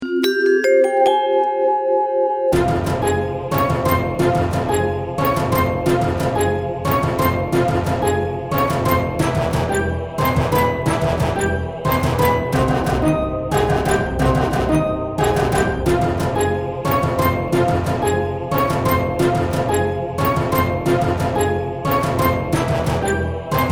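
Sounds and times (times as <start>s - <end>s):
instrumental music: 0.0s - 23.7s.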